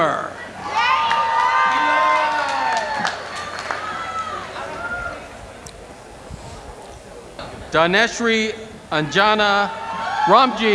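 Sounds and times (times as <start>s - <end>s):
crowd cheering and whooping: 0.4s - 5.4s, 9.0s - 10.7s
hands clapping: 2.4s - 3.9s
speech: 7.7s - 10.7s.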